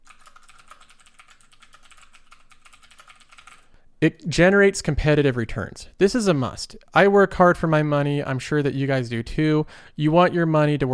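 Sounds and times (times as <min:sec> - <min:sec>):
typing on a computer keyboard: 0:00.0 - 0:03.7
speech: 0:04.0 - 0:10.9.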